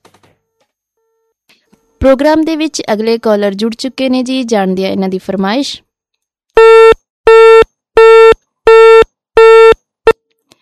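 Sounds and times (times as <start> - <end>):
speech: 2.0 - 5.9
phone line busy tone after a phone-in caller's connection drops: 6.6 - 9.8.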